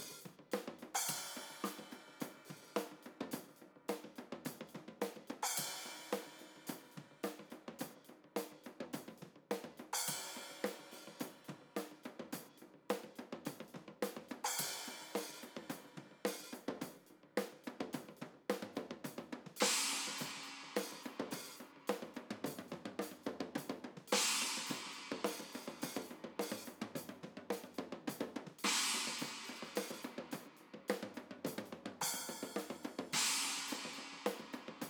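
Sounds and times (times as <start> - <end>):
cymbals: 0.0 - 34.8.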